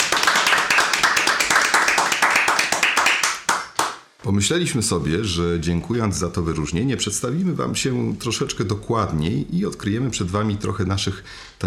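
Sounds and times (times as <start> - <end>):
applause through the microphones: 0.0 - 4.1
speech: 4.3 - 11.6.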